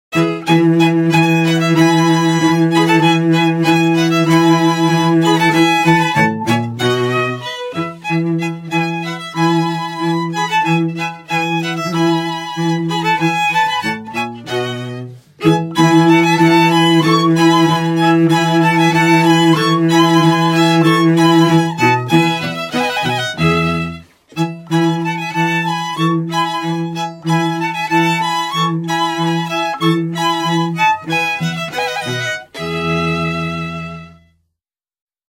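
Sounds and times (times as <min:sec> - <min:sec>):
strings: 0:00.1 - 0:34.4.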